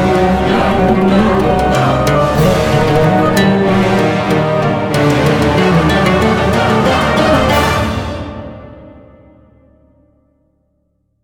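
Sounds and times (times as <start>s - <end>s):
Arabic oud playing: 0.0s - 8.7s.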